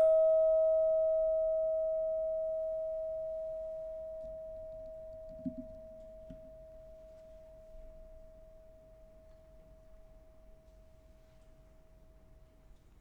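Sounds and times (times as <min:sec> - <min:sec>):
meditation bell ringing: 0:00.0 - 0:09.3.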